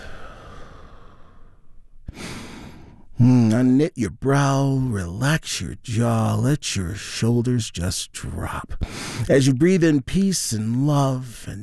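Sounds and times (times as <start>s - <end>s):
group taking a deep healing breath during a guided relaxation: 0.0s - 3.1s
speech: 3.2s - 11.6s.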